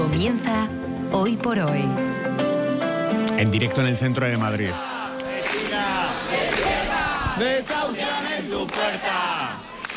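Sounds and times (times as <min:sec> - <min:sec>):
speech: 0:00.2 - 0:02.1, 0:03.4 - 0:04.9
protest crowd chanting and shouting at eviction: 0:04.7 - 0:09.9.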